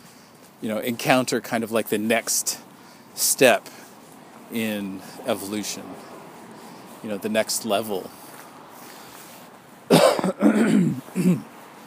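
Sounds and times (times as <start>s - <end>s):
speech: 0.6s - 3.8s, 4.5s - 6.1s, 7.0s - 8.2s, 10.8s - 11.5s
person coughing: 9.9s - 11.5s.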